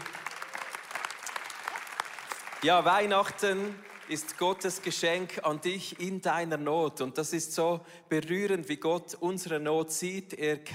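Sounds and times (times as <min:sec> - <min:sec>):
audience applause: 0:00.0 - 0:05.3
speech: 0:02.6 - 0:10.7.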